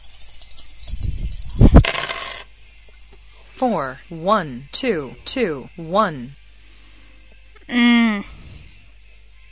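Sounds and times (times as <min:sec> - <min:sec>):
dice rattling in a computer Yahtzee game: 0:00.0 - 0:02.4
speech: 0:03.6 - 0:06.4, 0:07.7 - 0:08.4.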